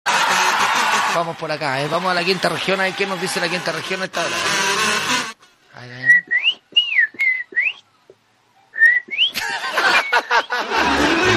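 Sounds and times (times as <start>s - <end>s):
laughter: 0.1s - 1.4s, 9.3s - 11.3s
speech: 1.2s - 4.7s, 5.8s - 6.3s
person whistling a bird-song imitation: 6.0s - 7.8s, 8.8s - 10.2s.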